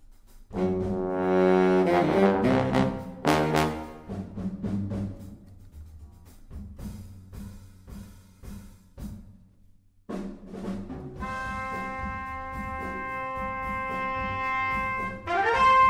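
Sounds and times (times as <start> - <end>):
horns: 0.5 - 5.4, 10.6 - 15.8.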